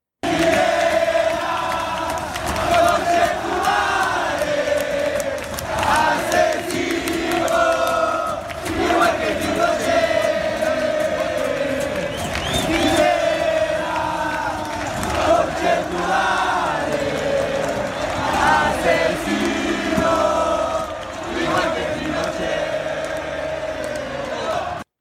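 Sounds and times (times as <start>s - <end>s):
football supporters chanting in a stadium: 0.2s - 24.9s.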